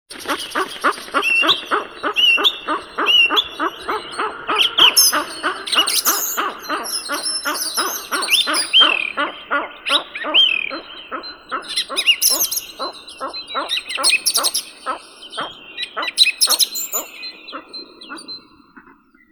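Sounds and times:
capercaillie Tetrao urogallus calling: 0.1 - 18.6.

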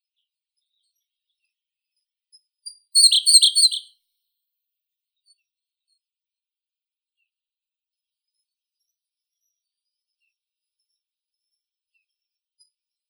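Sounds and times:
Siberian blue robin Luscinia cyane singing: 3.0 - 3.9.

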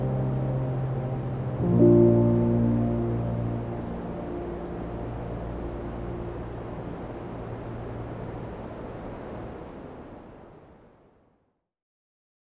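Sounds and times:
piano: 0.0 - 8.7
white noise: 0.0 - 11.4.

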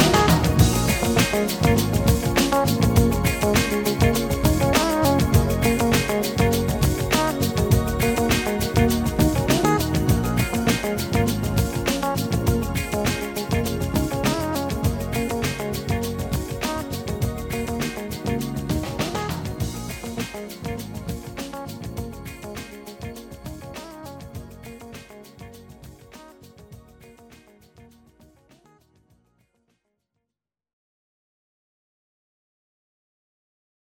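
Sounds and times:
noise mix: 0.0 - 25.0.

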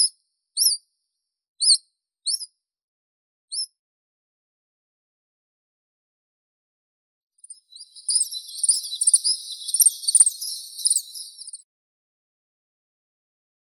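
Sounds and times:
chiffchaff Phylloscopus collybita singing: 7.9 - 11.6.

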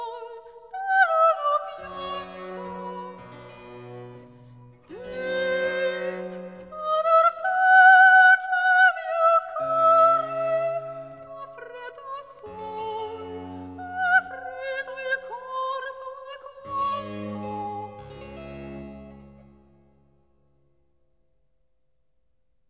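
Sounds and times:
soprano solo singing cantata recitative: 0.0 - 3.7, 4.8 - 18.2.

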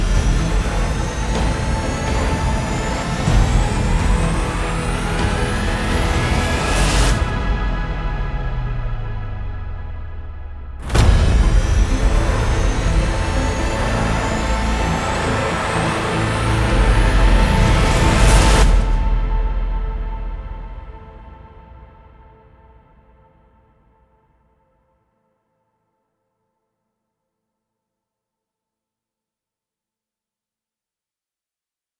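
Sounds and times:
synthesizer: 0.0 - 24.4.

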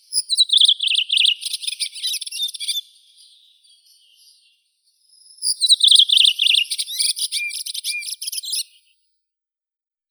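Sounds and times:
redwing Turdus iliacus calling: 0.1 - 2.8, 5.5 - 8.6.

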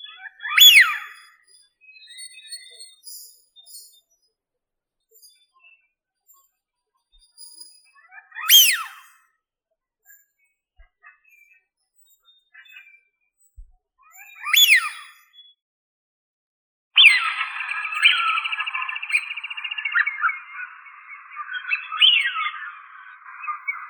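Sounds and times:
Anas penelope calls: 0.5 - 1.1, 8.4 - 9.1, 14.5 - 15.1, 17.0 - 23.8.

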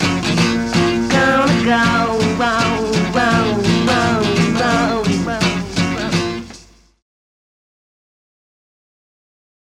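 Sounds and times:
acoustic music: 0.0 - 7.0.

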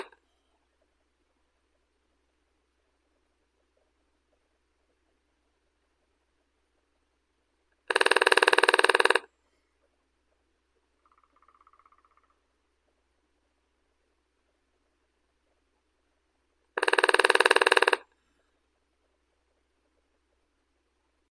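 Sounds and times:
lesser spotted woodpecker Dendrocopos minor: 7.9 - 9.3, 11.0 - 12.7, 16.8 - 18.1.

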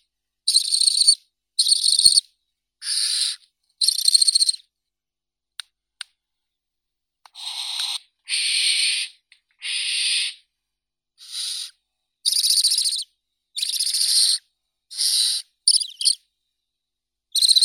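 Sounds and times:
barn owl Tyto alba chicks calling: 0.5 - 2.2, 2.8 - 4.6, 7.4 - 10.4, 11.2 - 16.2, 17.4 - 17.6.

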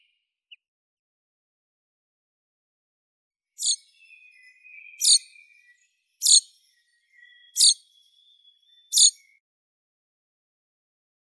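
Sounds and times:
common chaffinch Fringilla coelebs singing: 3.6 - 9.3.

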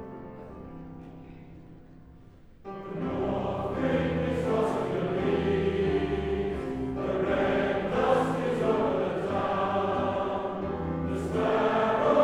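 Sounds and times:
Welsh male voice choir singing: 2.9 - 12.2.

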